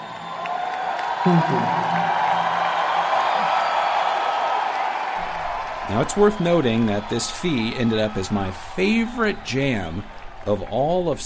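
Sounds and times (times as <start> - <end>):
concert crowd applause and cheering: 0.0 - 11.2
speech: 1.2 - 2.2, 5.9 - 11.2.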